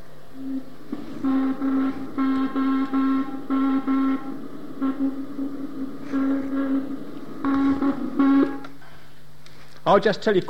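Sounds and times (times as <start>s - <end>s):
slowed-down Doppler-shifted Morse code signal: 0.4s - 8.8s
speech: 9.9s - 10.4s.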